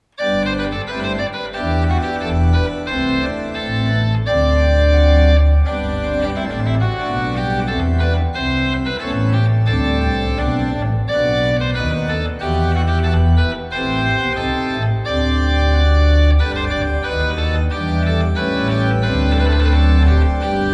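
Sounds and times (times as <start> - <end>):
trumpet piece: 0.1 - 20.7.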